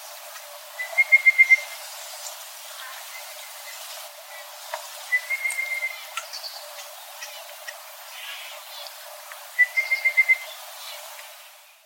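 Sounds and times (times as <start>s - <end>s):
red-browed pardalote calling: 5.1s - 6.0s, 9.6s - 10.5s.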